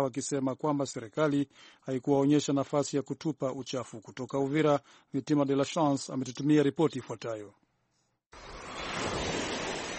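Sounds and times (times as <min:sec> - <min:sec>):
speech: 0:00.0 - 0:07.6, 0:08.3 - 0:08.6
waves washing onto the rubbish-strewn shore of Lake Tanganyika at Uvira: 0:08.4 - 0:09.9.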